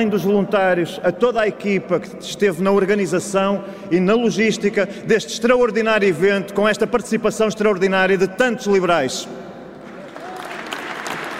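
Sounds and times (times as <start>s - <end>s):
speech: 0.0s - 9.5s
audience applause: 9.8s - 11.3s.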